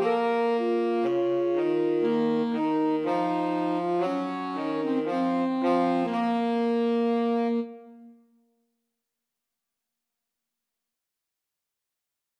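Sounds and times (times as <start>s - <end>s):
2 alto saxophones playing a pastorale: 0.0s - 8.3s.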